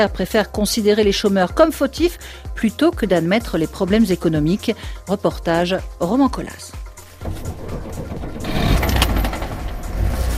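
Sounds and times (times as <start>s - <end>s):
speech: 0.0s - 7.4s
1983 Lada Zhiguli car engine starting: 6.9s - 10.3s.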